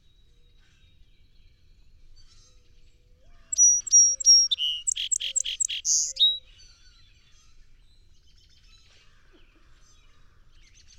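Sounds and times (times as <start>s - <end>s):
song sparrow song: 3.5s - 6.6s.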